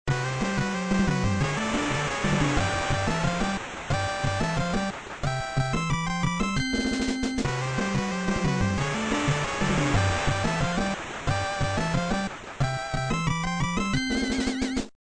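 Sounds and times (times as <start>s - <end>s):
prototype music variation: 0.1s - 14.9s.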